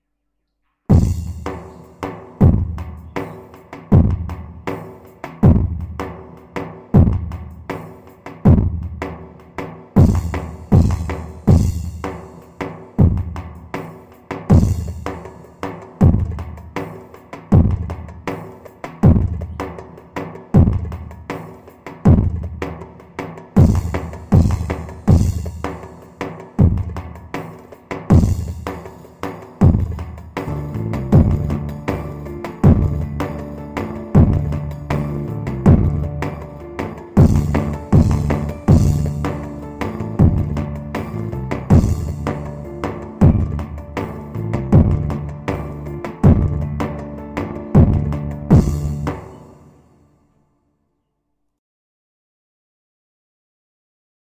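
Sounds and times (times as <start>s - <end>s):
Korg Pa500 keyboard playing a Turkish zeybek tune: 0.9s - 50.0s.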